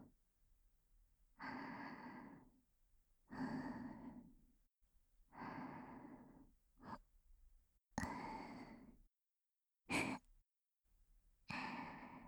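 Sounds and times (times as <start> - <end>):
breathing only: 1.4 - 2.6, 3.3 - 4.4, 5.3 - 7.0, 8.0 - 9.0, 11.5 - 12.2.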